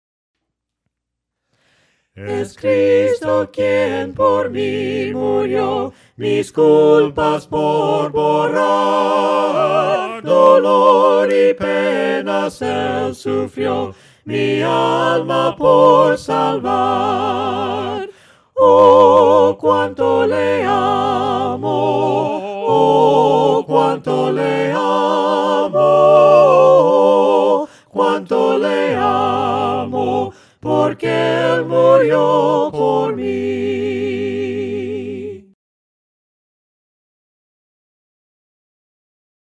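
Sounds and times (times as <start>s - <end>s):
voices singing hymns a cappella: 2.2s - 35.6s.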